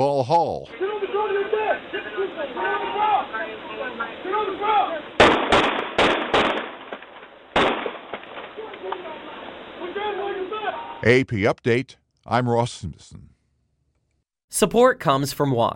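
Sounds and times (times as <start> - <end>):
speech: 0.0 - 5.2, 10.0 - 13.3, 14.5 - 15.7
gunshots from police dash cam footage in Miami Gardens: 5.0 - 9.8.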